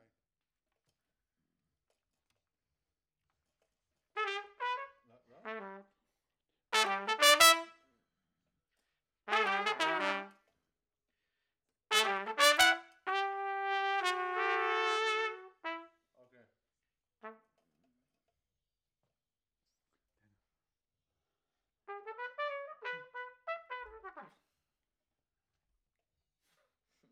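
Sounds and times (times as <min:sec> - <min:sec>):
trumpet: 0:04.2 - 0:06.0, 0:06.8 - 0:07.9, 0:09.3 - 0:10.4, 0:11.9 - 0:16.1, 0:17.2 - 0:17.6, 0:21.9 - 0:24.4.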